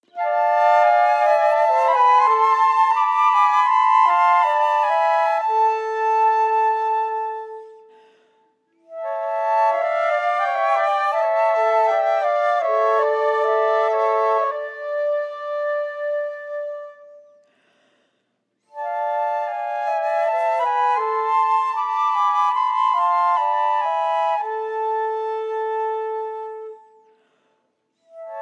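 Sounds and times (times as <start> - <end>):
chorale chamber music for 3 flutes: 0.1 - 8.1, 8.8 - 17.4, 18.6 - 27.2, 28.0 - 28.4.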